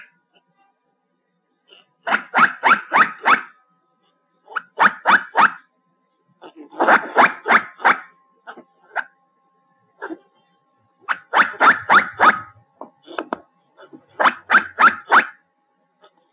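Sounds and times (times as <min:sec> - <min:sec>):
black giant squirrel calls: 0:02.0 - 0:03.5, 0:04.5 - 0:05.6, 0:06.8 - 0:08.1, 0:11.0 - 0:12.6, 0:14.2 - 0:15.4.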